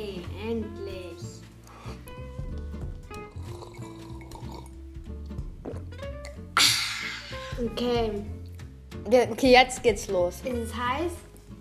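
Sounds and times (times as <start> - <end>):
person slurping a drink: 3.2 - 4.8, 5.6 - 7.6
wet gurgling liquid: 3.4 - 4.8
speech: 7.6 - 8.4, 9.1 - 11.2.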